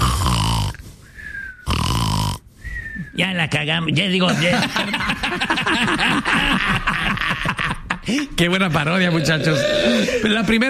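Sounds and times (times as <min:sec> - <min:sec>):
voice imitating snoring: 0:00.0 - 0:00.8, 0:01.6 - 0:02.4, 0:09.1 - 0:10.2
speech: 0:03.2 - 0:10.6
laughter: 0:04.3 - 0:08.2.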